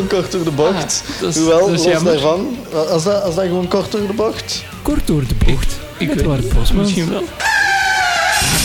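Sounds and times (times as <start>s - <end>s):
speech: 0.1s - 7.5s
podcast jingle: 4.9s - 8.2s
laughter: 5.8s - 8.5s.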